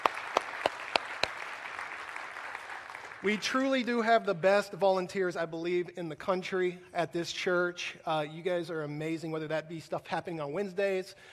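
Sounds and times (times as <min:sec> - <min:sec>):
audience applause: 0:00.0 - 0:03.7
speech: 0:03.2 - 0:11.3.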